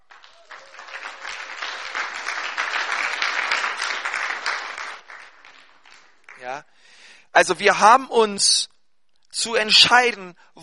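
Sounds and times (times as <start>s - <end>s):
audience applause: 0.0s - 6.6s
speech: 7.4s - 8.7s, 9.4s - 10.6s.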